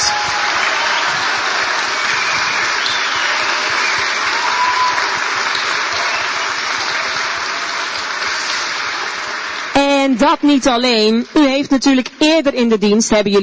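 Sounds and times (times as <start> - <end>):
audience applause: 0.0 - 9.8
speech: 10.0 - 13.4.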